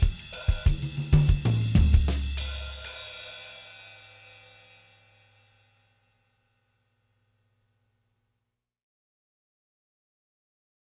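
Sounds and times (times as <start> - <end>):
drumset playing samba cruzado: 0.0 - 4.0.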